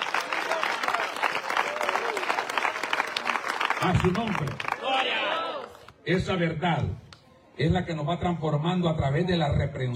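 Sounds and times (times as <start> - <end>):
audience applause: 0.0 - 5.8
speech: 3.8 - 5.3, 6.1 - 9.9.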